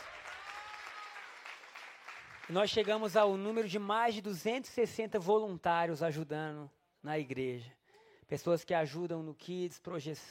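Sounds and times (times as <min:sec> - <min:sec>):
audience clapping: 0:00.0 - 0:03.9
speech: 0:02.5 - 0:10.2.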